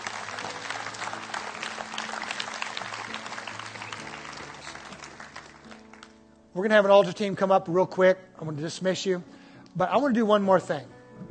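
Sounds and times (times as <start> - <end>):
audience applause: 0.0 - 6.2
speech: 6.6 - 11.0.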